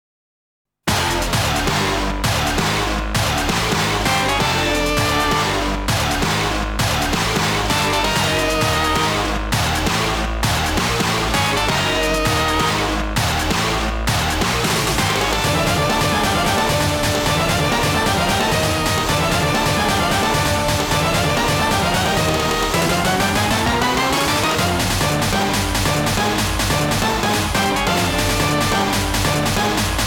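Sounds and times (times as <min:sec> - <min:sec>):
boss battle background music: 0:00.9 - 0:30.0.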